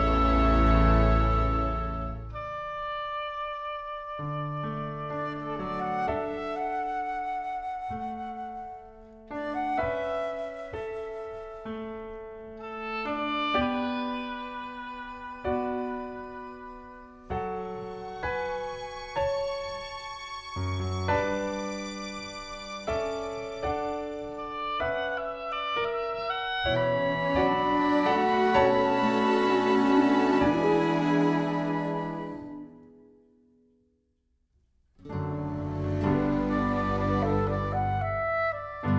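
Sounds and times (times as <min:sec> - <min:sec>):
musical accompaniment: 0:00.0 - 0:33.2, 0:35.0 - 0:38.9.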